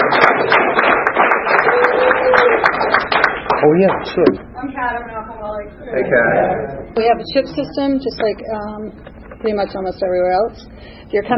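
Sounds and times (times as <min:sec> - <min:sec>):
round of applause: 0:00.0 - 0:04.3
speech: 0:03.6 - 0:11.3.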